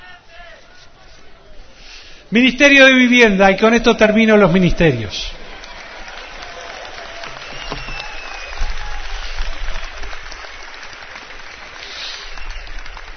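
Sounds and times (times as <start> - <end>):
speech: 2.3 - 5.4
audience applause: 4.3 - 13.1.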